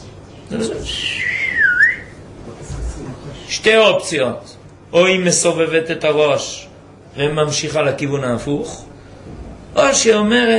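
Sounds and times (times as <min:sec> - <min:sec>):
speech: 0:00.5 - 0:01.4, 0:03.6 - 0:08.9, 0:09.8 - 0:10.5
person whistling to mimic a snake: 0:00.9 - 0:02.2.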